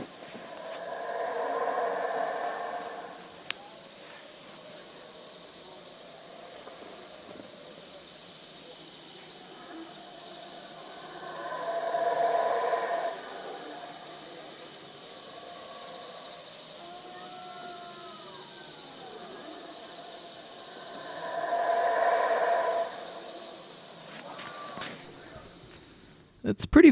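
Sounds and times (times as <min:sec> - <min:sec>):
high-pitched insect drone: 0:00.0 - 0:26.3
small monkeys calling from far in a jungle: 0:00.2 - 0:03.7, 0:10.1 - 0:25.5.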